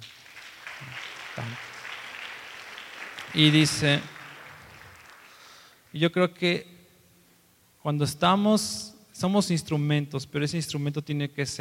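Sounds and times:
audience applause: 0:00.0 - 0:05.7
speech: 0:03.4 - 0:04.2, 0:06.0 - 0:06.7, 0:07.8 - 0:11.5.

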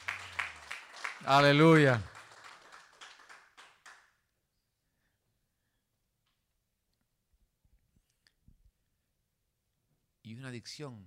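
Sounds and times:
audience clapping in unison: 0:00.0 - 0:04.2
speech: 0:01.2 - 0:02.1, 0:10.5 - 0:11.0.

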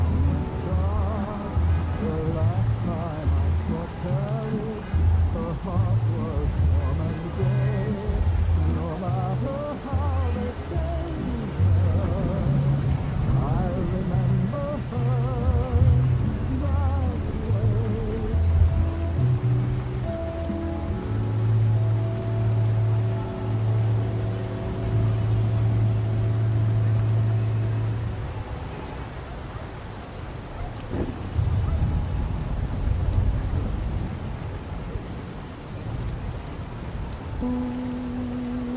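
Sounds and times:
oldies music playing in another room: 0:00.0 - 0:29.0, 0:36.8 - 0:38.7
traffic noise through an open window: 0:00.0 - 0:38.7.

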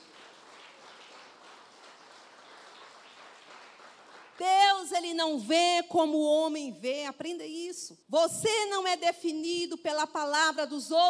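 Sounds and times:
applause from a large crowd: 0:00.0 - 0:04.4
speech: 0:04.4 - 0:11.0.

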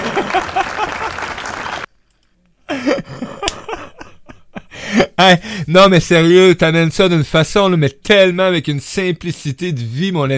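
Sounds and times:
crowd applause: 0:00.0 - 0:01.9
laughter: 0:00.0 - 0:01.9, 0:02.7 - 0:05.2
speech: 0:05.2 - 0:10.3.

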